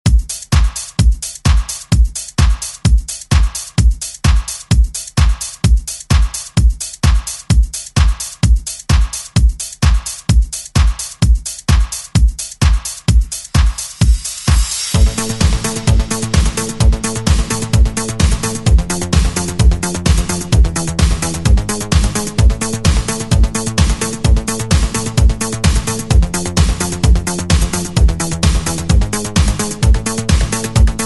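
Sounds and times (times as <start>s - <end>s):
eighties drum beat: 0.0s - 31.0s.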